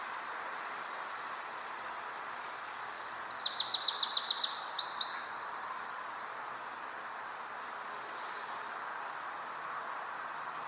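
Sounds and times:
light background hiss: 0.0s - 10.6s
Eurasian wren singing: 3.2s - 5.5s.

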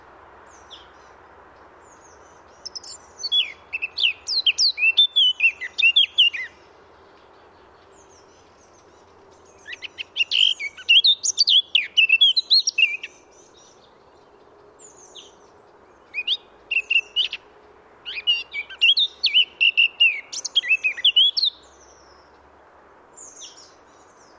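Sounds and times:
Eurasian blackcap fast varied warbling song: 1.9s - 6.6s, 7.7s - 15.4s, 16.0s - 17.4s, 18.1s - 22.0s.

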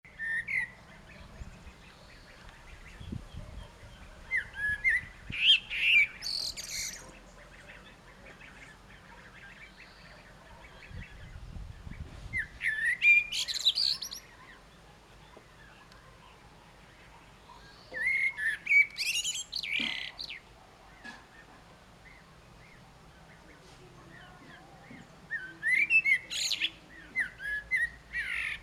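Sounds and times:
Common blackbird song: 0.1s - 28.6s.

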